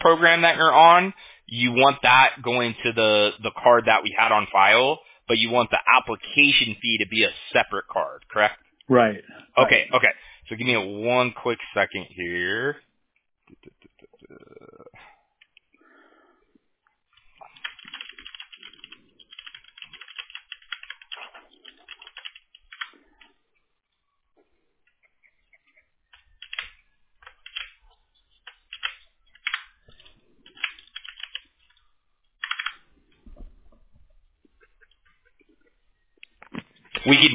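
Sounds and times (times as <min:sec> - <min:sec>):
speech: 0:00.0 - 0:12.9, 0:37.0 - 0:37.3
typing a message on a computer keyboard: 0:17.4 - 0:23.3, 0:26.1 - 0:27.8, 0:28.4 - 0:31.8, 0:32.4 - 0:32.8.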